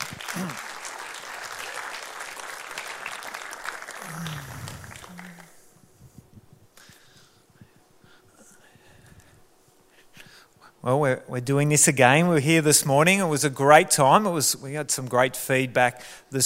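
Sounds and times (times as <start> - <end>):
audience clapping: 0.0 - 5.7
brief vocal sounds: 0.3 - 0.6, 4.0 - 5.6
speech: 10.8 - 16.4.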